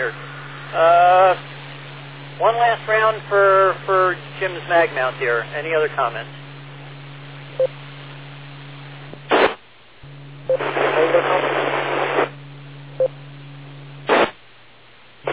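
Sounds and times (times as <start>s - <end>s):
radio static: 0.0s - 1.5s, 2.4s - 6.4s, 9.1s - 9.6s, 10.5s - 12.4s, 14.0s - 14.4s
speech: 0.0s - 1.5s, 2.4s - 6.4s, 7.6s - 7.8s.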